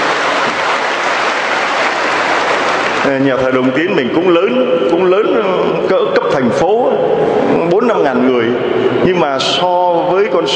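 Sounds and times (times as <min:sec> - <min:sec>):
large crowd applauding loudly: 0:00.0 - 0:03.2
speech: 0:03.1 - 0:07.1, 0:07.9 - 0:10.5.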